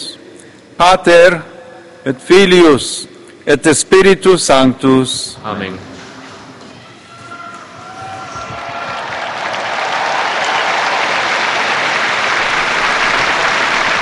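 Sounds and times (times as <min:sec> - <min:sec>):
speech: 0:00.8 - 0:05.9
large crowd of faithful applauding: 0:08.0 - 0:13.9.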